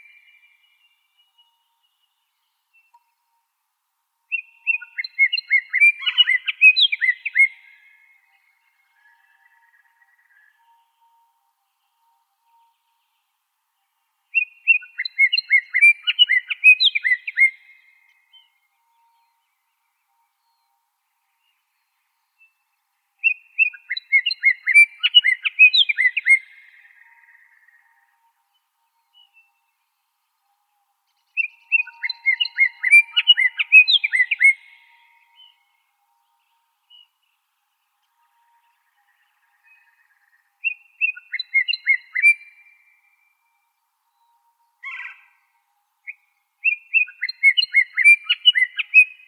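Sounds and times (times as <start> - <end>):
Scott's oriole icterid call: 4.3 - 11.3, 14.3 - 19.4, 23.2 - 28.3, 31.3 - 35.7, 38.2 - 43.1, 44.1 - 49.2.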